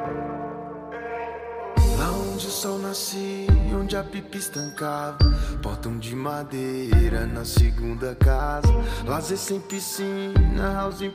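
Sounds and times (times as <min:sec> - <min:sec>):
deep bass: 0:01.8 - 0:02.5, 0:03.5 - 0:04.1, 0:06.9 - 0:09.3, 0:10.4 - 0:11.0.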